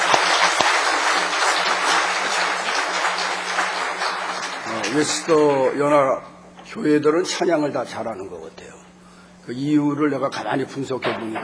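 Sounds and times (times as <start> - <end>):
audience applause: 0.0 - 5.9
speech: 4.9 - 8.8, 9.5 - 11.4.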